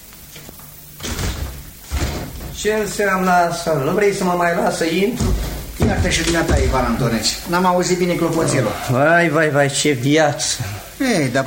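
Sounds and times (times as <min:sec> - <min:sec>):
wooden door opening and banging: 0:01.0 - 0:02.8, 0:05.2 - 0:07.2
speech: 0:02.6 - 0:11.4.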